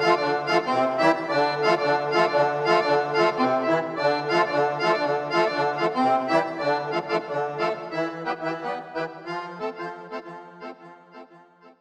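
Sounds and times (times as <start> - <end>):
concertina: 0.0 - 11.5.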